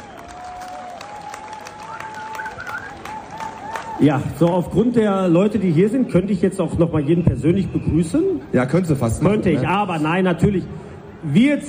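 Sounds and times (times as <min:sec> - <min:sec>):
audience applause: 0:00.0 - 0:04.6
speech: 0:04.0 - 0:11.6.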